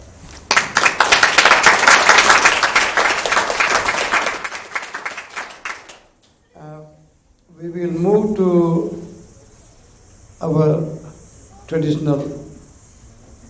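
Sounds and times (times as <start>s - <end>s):
audience applause: 0.5s - 6.2s
speech: 7.7s - 9.0s, 10.5s - 10.9s, 11.7s - 12.4s.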